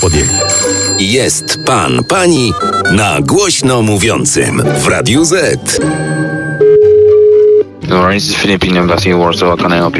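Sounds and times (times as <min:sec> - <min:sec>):
telephone line tone while calling the embassy of the Philippines: 0:00.0 - 0:03.2, 0:06.0 - 0:07.7
speech: 0:01.1 - 0:06.4, 0:07.9 - 0:09.9.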